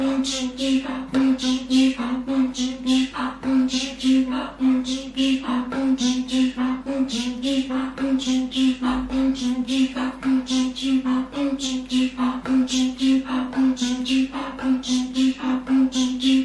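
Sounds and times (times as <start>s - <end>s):
Inuit throat singing: 0.0s - 16.4s.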